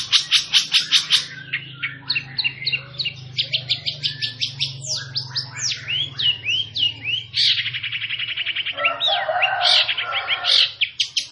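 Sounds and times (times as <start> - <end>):
long-tailed shrike singing: 0.0 - 11.2.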